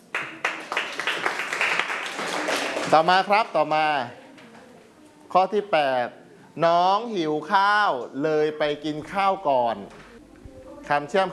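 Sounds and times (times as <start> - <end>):
many hands clapping during a Thai language lesson: 0.0 - 3.2
speech: 2.9 - 4.2, 5.3 - 10.0, 10.9 - 11.3.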